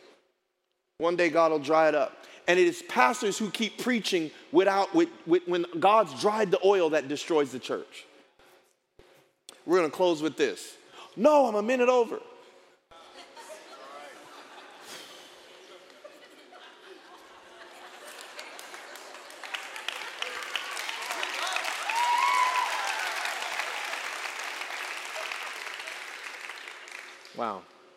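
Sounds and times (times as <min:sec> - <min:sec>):
speech: 0:01.0 - 0:08.1, 0:09.6 - 0:12.3
laughter: 0:13.0 - 0:21.0
crowd applauding: 0:17.6 - 0:27.8.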